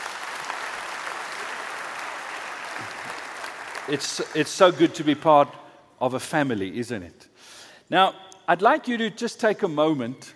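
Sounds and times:
audience applause: 0:00.0 - 0:04.7
speech: 0:03.9 - 0:10.3.

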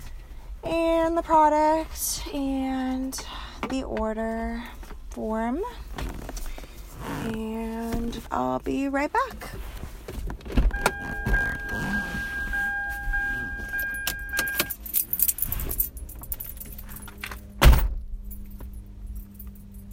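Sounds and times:
speech: 0:01.1 - 0:06.1, 0:07.0 - 0:09.7
car power window whirring: 0:10.7 - 0:14.7
keys jangling in a car used for cannabis deliveries: 0:13.3 - 0:17.6, 0:18.3 - 0:19.9.

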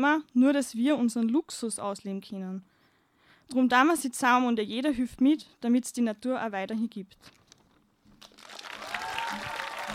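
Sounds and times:
speech: 0:00.0 - 0:02.7, 0:03.5 - 0:07.4
applause: 0:08.2 - 0:09.9.

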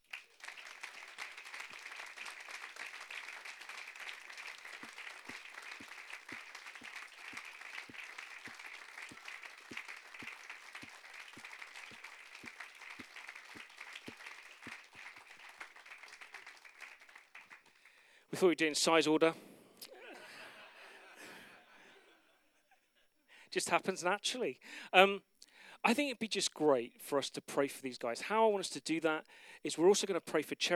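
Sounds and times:
audience clapping to welcome people onto the stage: 0:00.0 - 0:18.6
speech: 0:18.4 - 0:19.4, 0:23.6 - 0:30.7
laughter: 0:19.8 - 0:23.1.

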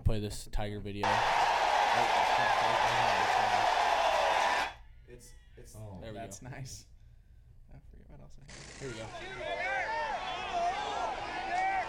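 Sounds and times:
speech: 0:00.1 - 0:03.9, 0:05.2 - 0:06.9, 0:08.1 - 0:09.8
crowd yelling and cheering in video: 0:01.0 - 0:04.8, 0:09.1 - 0:11.8.

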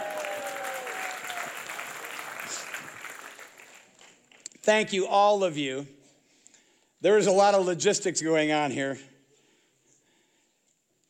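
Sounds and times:
crowd applause: 0:00.0 - 0:04.5
speech: 0:04.7 - 0:06.0, 0:07.0 - 0:09.1.

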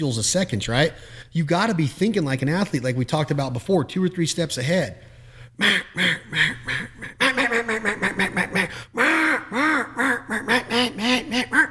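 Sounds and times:
speech: 0:00.0 - 0:07.0
duck call blown in raspy quacks: 0:05.6 - 0:11.6.

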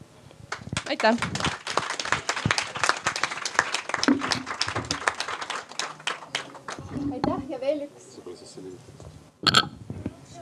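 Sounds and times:
audience applause: 0:00.6 - 0:07.2
speech: 0:00.9 - 0:01.6, 0:07.6 - 0:09.8.

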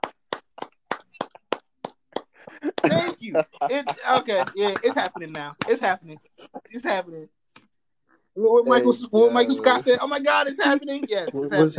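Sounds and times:
hands clapping: 0:00.0 - 0:06.0
speech: 0:02.7 - 0:07.4, 0:08.4 - 0:11.7.

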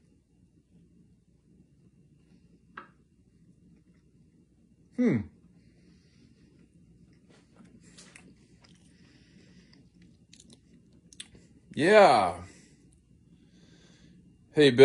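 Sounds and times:
speech: 0:05.0 - 0:05.3, 0:11.8 - 0:12.5, 0:14.6 - 0:14.8
faint, sparse chewing: 0:06.5 - 0:11.6
crisp bite of an Alpha plant-based burger: 0:09.7 - 0:11.4.

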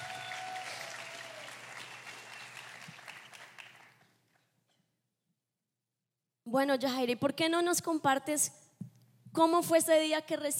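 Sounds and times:
crowd applauding: 0:00.0 - 0:04.4
speech: 0:06.5 - 0:08.6, 0:09.4 - 0:10.5.

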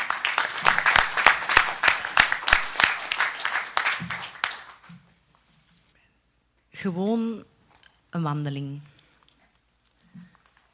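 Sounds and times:
audience applauding: 0:00.0 - 0:04.9
speech: 0:06.8 - 0:07.5, 0:08.1 - 0:08.9.

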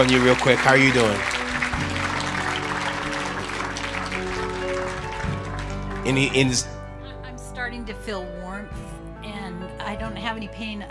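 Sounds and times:
speech: 0:00.0 - 0:01.4, 0:06.0 - 0:06.7, 0:07.8 - 0:08.8, 0:09.8 - 0:10.9
audience clapping: 0:00.0 - 0:06.9.

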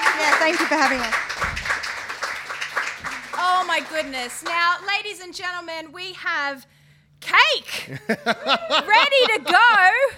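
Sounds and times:
audience applause: 0:00.0 - 0:04.8
speech: 0:00.4 - 0:01.4, 0:03.5 - 0:10.1
laughter: 0:07.9 - 0:10.1.

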